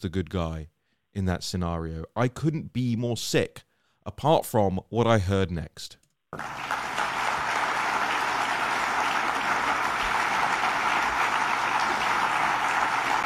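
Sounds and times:
speech: 0.0 - 6.8
room full of lawyers applauding: 6.4 - 13.2.

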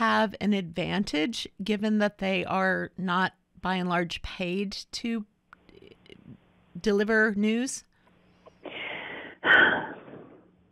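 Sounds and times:
speech: 0.2 - 5.3, 6.3 - 7.9
deep breath, inhale and rushing exhale: 8.6 - 10.4.

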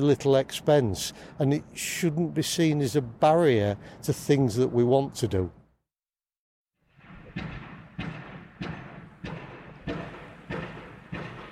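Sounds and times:
speech: 0.0 - 5.6
pile driving at a building site for the new Arco building: 7.0 - 11.5.

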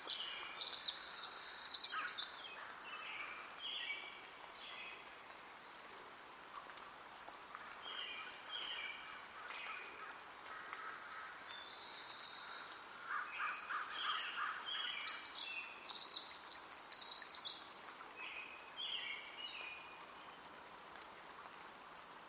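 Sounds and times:
birds singing at Hoyt Arboretum in Portland, Oregon: 0.0 - 4.0, 13.2 - 19.3
hiss: 0.0 - 22.2.

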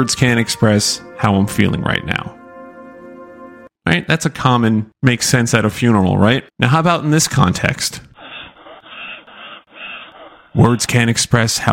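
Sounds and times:
speech: 0.0 - 2.4, 3.9 - 8.1, 10.6 - 11.7
heavy rasping breathing: 7.9 - 11.1.

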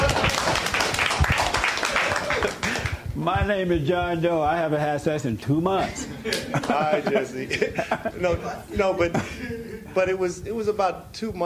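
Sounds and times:
laughter: 0.0 - 0.8, 1.7 - 3.0, 5.8 - 10.1
applause: 0.0 - 3.0
speech: 3.3 - 11.4.

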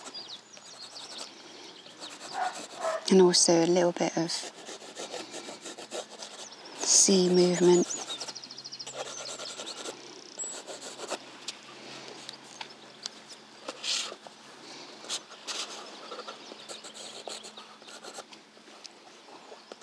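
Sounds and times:
pencil drawing details on paper: 0.8 - 1.3, 2.0 - 3.1, 4.3 - 8.3, 8.9 - 11.2, 15.1 - 18.2
speech: 3.1 - 4.6, 7.1 - 8.1.

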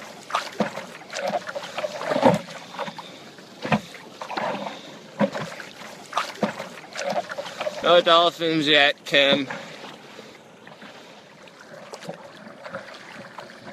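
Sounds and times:
paddles dipping and pulling through water: 0.0 - 13.7
speech: 7.9 - 9.6.

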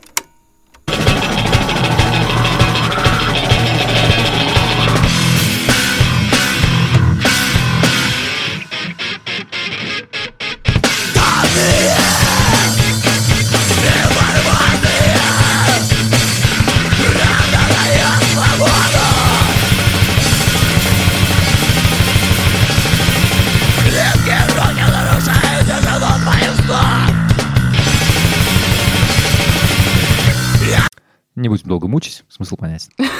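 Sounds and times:
shouted vocals: 0.9 - 5.5, 11.1 - 20.8, 23.7 - 27.4, 30.3 - 30.9
metal song with dense distorted guitars: 0.9 - 30.9
laughter: 33.0 - 33.1.

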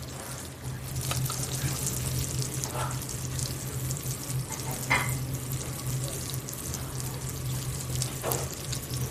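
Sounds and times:
rosemary crackling and sizzling in hot butter in a pan: 0.0 - 9.0.

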